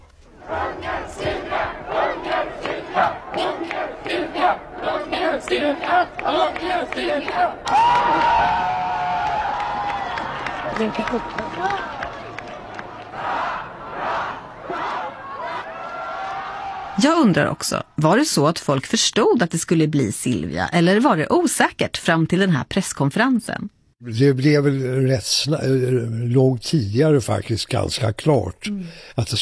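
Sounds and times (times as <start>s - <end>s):
large crowd cheering and shouting for the king: 0.4s - 17.5s
speech: 5.5s - 9.0s, 10.8s - 11.9s, 17.0s - 29.4s.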